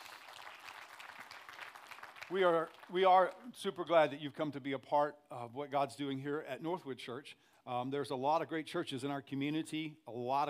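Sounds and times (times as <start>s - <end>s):
church congregation at Northwood Church applauding its guests: 0.0s - 3.1s
speech: 2.3s - 10.4s.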